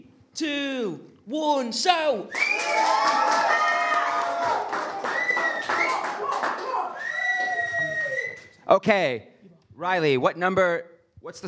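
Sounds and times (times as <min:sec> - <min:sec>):
speech: 0:00.4 - 0:04.9, 0:08.7 - 0:11.4
audience shouting and cheering: 0:02.3 - 0:08.6
people clapping: 0:02.3 - 0:08.6.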